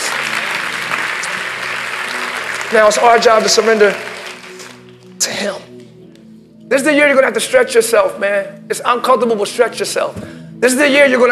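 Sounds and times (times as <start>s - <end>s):
audience clapping: 0.0s - 5.2s
speech: 2.7s - 4.1s, 5.4s - 5.7s, 6.7s - 11.2s.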